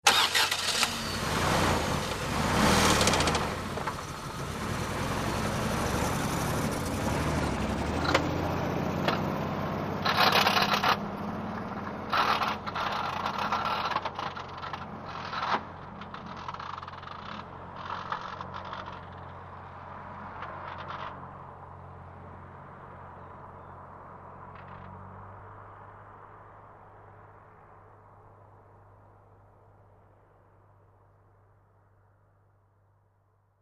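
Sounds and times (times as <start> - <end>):
car starting and driving off medium fast with heavy rattles: 0.0 - 19.5.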